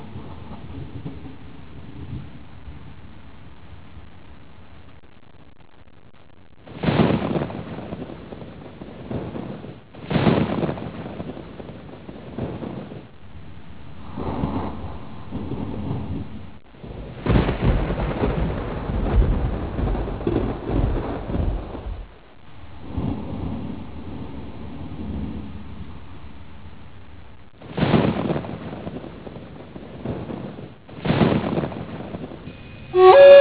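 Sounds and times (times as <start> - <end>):
thunder: 0.0 - 2.9, 6.7 - 13.1, 13.9 - 22.2, 22.8 - 26.1, 27.6 - 33.3
flute: 32.5 - 33.3.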